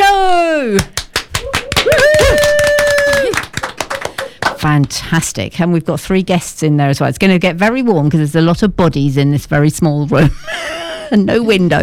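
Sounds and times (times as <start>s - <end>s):
small group clapping: 0.7s - 5.1s
whoop or whistle: 1.5s - 3.4s
speech: 4.6s - 11.8s.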